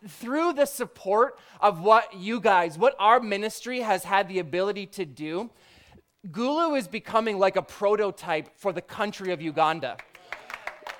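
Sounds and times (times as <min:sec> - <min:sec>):
speech: 0:00.1 - 0:10.1
sparse light applause from a small audience: 0:10.0 - 0:10.9.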